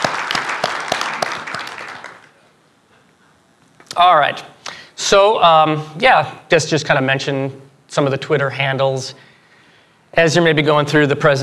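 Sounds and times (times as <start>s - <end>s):
audience applause: 0.0s - 2.4s
speech: 4.0s - 9.3s, 10.1s - 11.4s.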